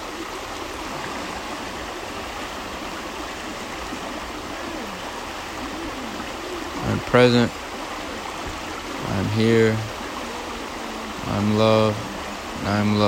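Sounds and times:
stream water flowing: 0:00.0 - 0:13.0
speech: 0:07.0 - 0:07.6, 0:09.2 - 0:09.9, 0:11.2 - 0:13.0.

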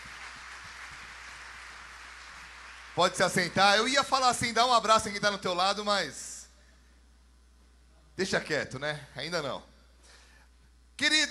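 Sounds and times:
crowd applauding: 0:00.0 - 0:03.9
faint low hum: 0:00.0 - 0:11.2
speech: 0:03.0 - 0:06.3, 0:08.2 - 0:09.7, 0:11.0 - 0:11.2.

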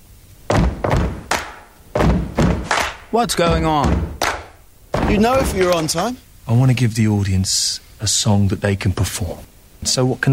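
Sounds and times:
feet stamping to a beat: 0:00.5 - 0:05.8
speech: 0:03.1 - 0:04.1, 0:05.1 - 0:10.3.

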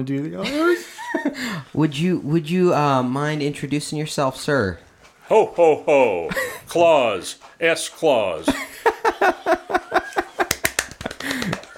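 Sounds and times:
speech: 0:00.0 - 0:08.6
laughter: 0:00.4 - 0:01.6, 0:05.3 - 0:06.9, 0:08.5 - 0:11.7
hand clapping spiking the microphone: 0:10.1 - 0:11.7.

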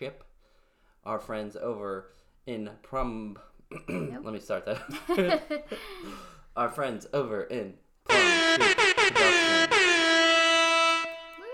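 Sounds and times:
speech: 0:00.0 - 0:00.3, 0:01.0 - 0:09.7
air horn sound effect blasts: 0:08.1 - 0:11.5.

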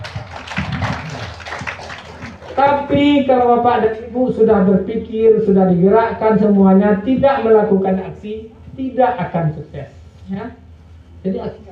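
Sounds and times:
audience applause at a motivational seminar: 0:00.0 - 0:02.7
speech: 0:02.6 - 0:10.6, 0:11.2 - 0:11.7.

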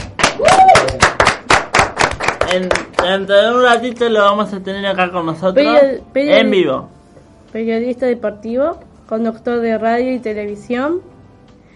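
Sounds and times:
studio applause: 0:00.0 - 0:04.1
speech: 0:02.5 - 0:06.9, 0:07.5 - 0:11.1.

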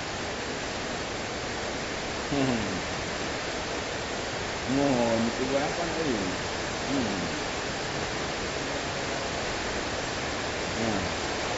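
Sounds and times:
rain: 0:00.0 - 0:11.5
speech: 0:02.3 - 0:02.8, 0:04.7 - 0:07.4.

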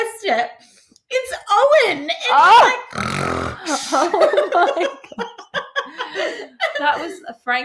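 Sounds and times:
speech: 0:00.3 - 0:05.4, 0:06.1 - 0:07.6
loud snoring recorded on phone: 0:02.9 - 0:04.0
laughter: 0:03.6 - 0:07.4.

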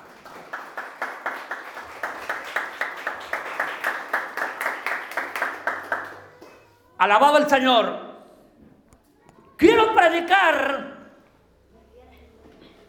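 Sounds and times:
audience clapping in a steady rhythmic unison beat: 0:00.0 - 0:06.6
speech: 0:07.0 - 0:08.0, 0:10.0 - 0:10.9.

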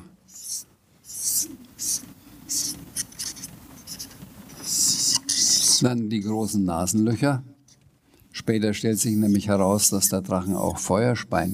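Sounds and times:
pen scratching across paper: 0:00.4 - 0:05.8
speech: 0:05.8 - 0:07.5, 0:08.5 - 0:11.5.

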